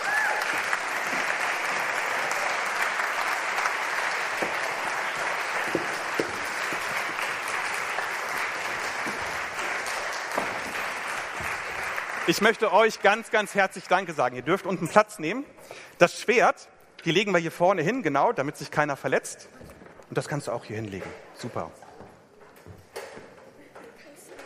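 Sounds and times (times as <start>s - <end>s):
audience applause: 0.0s - 14.2s
speech: 12.3s - 21.8s.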